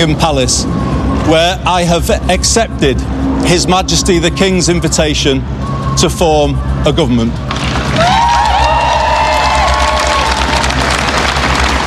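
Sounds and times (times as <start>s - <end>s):
speech: 0.0s - 8.1s
large crowd of supporters cheering with whoops and shouts: 7.5s - 11.8s
scattered clapping: 7.5s - 11.8s.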